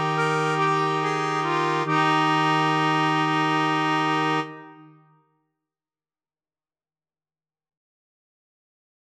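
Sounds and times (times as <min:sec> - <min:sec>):
slow musette: 0:00.0 - 0:05.2.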